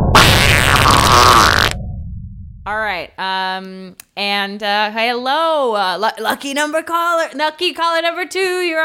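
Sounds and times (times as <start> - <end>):
fart cannon sound effect: 0.1 - 1.9
speech: 3.0 - 8.8.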